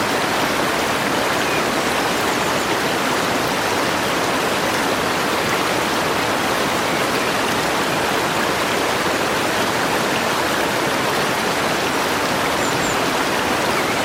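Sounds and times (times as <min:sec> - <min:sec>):
alpine stream rushing over rocks: 0:00.0 - 0:14.0.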